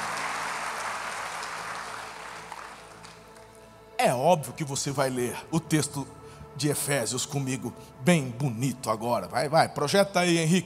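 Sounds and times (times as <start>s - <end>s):
audience applauding: 0.0s - 3.6s
speech: 4.0s - 10.6s.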